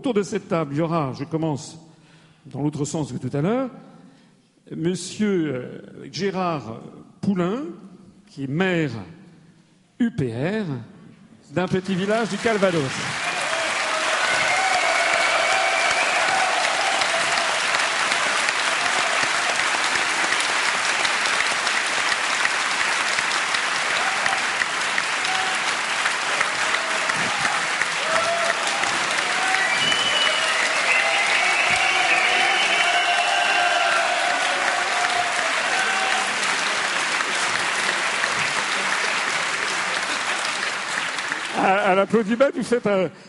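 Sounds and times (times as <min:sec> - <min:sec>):
speech: 0:00.0 - 0:03.9, 0:04.7 - 0:09.2, 0:10.0 - 0:10.9, 0:11.5 - 0:13.2, 0:42.2 - 0:43.2
audience applause: 0:11.8 - 0:42.1.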